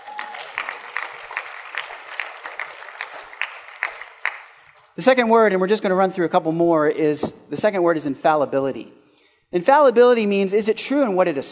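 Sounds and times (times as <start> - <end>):
audience clapping: 0.0 - 5.0
speech: 5.0 - 11.5.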